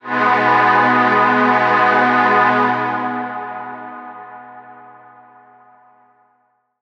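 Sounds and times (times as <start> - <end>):
old rave synth pad: 0.0 - 4.8.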